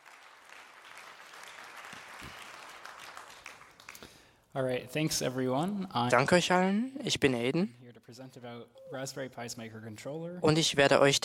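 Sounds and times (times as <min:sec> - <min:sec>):
audience applause: 0:00.0 - 0:04.3
speech: 0:04.6 - 0:11.2.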